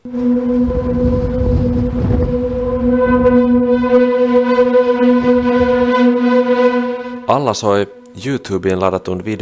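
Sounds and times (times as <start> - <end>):
wind humming through a tall building's structure: 0.0 - 6.0
rumbling gusts of wind: 0.0 - 6.3
speech: 7.5 - 9.4.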